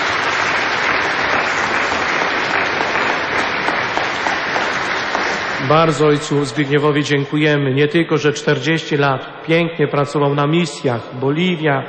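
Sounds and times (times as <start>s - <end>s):
audience applause: 0.0s - 6.6s
speech: 5.7s - 11.8s.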